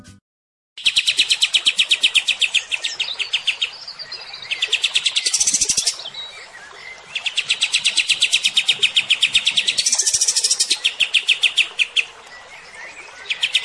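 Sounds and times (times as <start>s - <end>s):
kept cream-vented bulbul singing bursts of clipped repeated notes: 0.8s - 13.6s.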